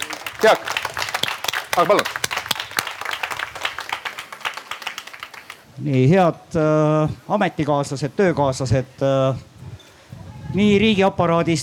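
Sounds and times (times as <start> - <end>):
audience applause: 0.0 - 5.7
speech: 0.4 - 0.8, 1.8 - 2.3, 5.8 - 9.5, 10.6 - 11.6.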